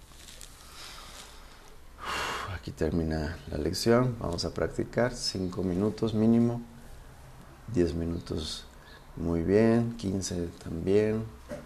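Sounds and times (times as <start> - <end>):
intake of breath during a guided spiritual meditation lesson: 0.6 - 2.6
speech: 2.6 - 6.7, 7.7 - 11.6.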